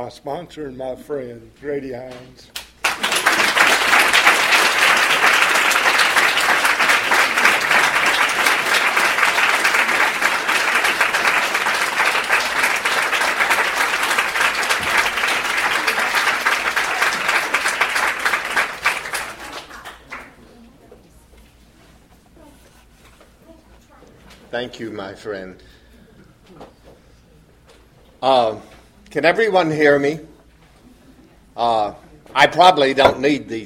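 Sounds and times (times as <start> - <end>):
speech: 0.0 - 3.5, 24.6 - 25.8, 28.2 - 30.3, 31.6 - 33.6
audience applause: 2.8 - 20.4.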